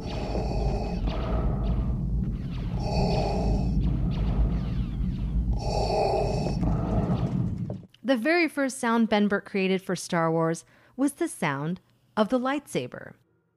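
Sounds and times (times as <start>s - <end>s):
Darth Vader respirator breathing through hoses: 0.0s - 4.0s, 5.5s - 7.3s
low rumble: 0.0s - 7.9s
speech: 8.1s - 13.2s.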